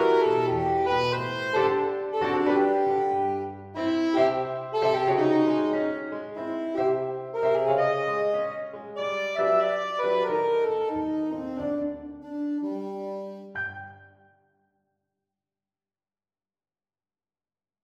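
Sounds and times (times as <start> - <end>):
swing style saxophone: 0.0 - 13.9.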